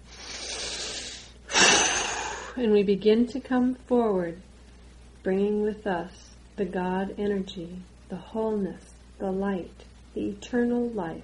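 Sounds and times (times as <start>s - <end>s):
deep breathing during a guided meditation: 0.0s - 2.6s
speech: 2.6s - 4.5s, 5.2s - 11.2s.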